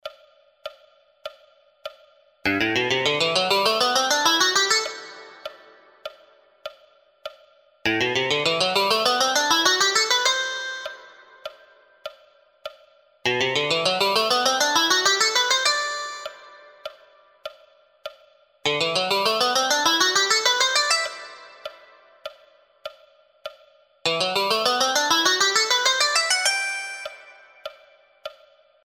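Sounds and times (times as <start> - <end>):
guitar scales in CAGED boxes: 2.5 - 5.8, 7.9 - 11.3, 13.3 - 16.8, 18.7 - 22.0, 24.1 - 27.6.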